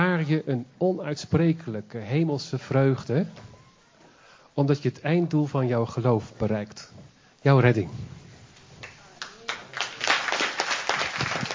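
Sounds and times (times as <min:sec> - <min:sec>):
speech: 0:00.2 - 0:03.5, 0:04.6 - 0:08.2
audience applause: 0:08.8 - 0:11.5.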